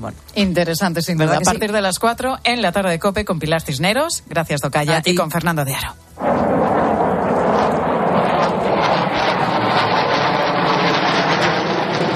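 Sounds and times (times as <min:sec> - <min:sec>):
speech: 0:00.0 - 0:06.6
MiG-29 fighter jet engine: 0:06.2 - 0:12.1.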